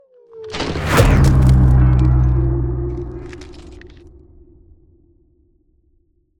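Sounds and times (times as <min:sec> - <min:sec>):
ice spell cold whooshes: 0:00.6 - 0:04.0.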